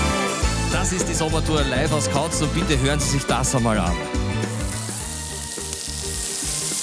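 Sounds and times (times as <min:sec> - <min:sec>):
speech: 0:00.8 - 0:04.4
pork chops sizzling on a grill: 0:04.3 - 0:06.8.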